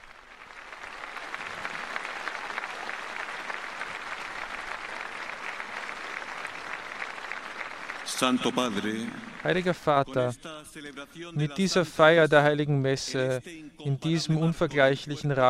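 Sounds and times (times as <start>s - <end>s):
large crowd applause: 0.0s - 10.4s
speech: 8.1s - 15.4s.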